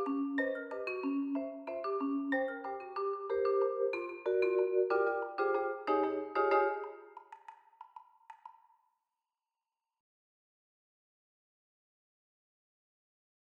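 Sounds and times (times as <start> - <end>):
vibraphone mallets: 0.0 - 7.9.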